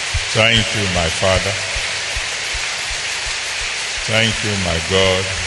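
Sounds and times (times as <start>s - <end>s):
audience clapping hands: 0.1s - 5.4s
speech: 0.3s - 1.7s, 4.1s - 5.4s.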